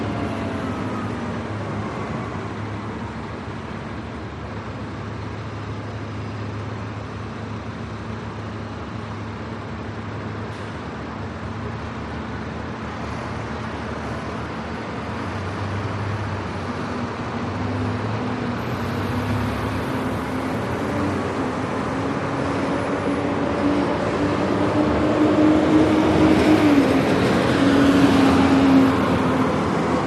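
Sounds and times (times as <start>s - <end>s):
Irish sirens: 0.0s - 3.2s, 18.6s - 30.0s
construction noise: 0.0s - 30.0s
heavy morning rush hour traffic: 0.0s - 30.0s.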